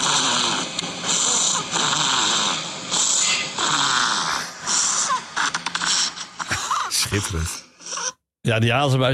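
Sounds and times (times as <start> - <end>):
hibernating dormouse snoring and grunting: 0.0 - 6.1
speech: 7.1 - 7.6, 8.4 - 9.1.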